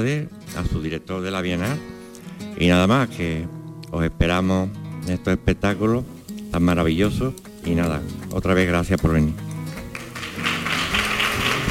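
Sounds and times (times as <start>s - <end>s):
speech: 0.0s - 2.0s, 2.6s - 9.4s
audience applause after a show: 9.8s - 11.6s.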